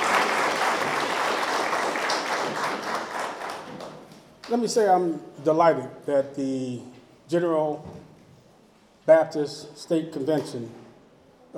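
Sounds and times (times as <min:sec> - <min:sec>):
crowd applauding: 0:00.0 - 0:04.6
speech: 0:04.5 - 0:08.0, 0:09.1 - 0:10.8.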